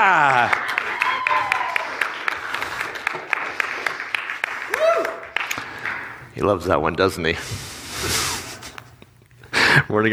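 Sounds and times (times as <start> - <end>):
audience applause: 0.0 - 6.2
speech: 6.4 - 8.2, 9.8 - 10.1.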